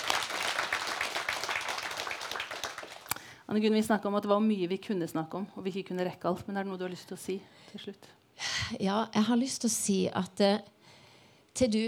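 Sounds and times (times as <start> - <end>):
applause: 0.0 - 3.3
speech: 3.5 - 10.8, 11.6 - 11.8.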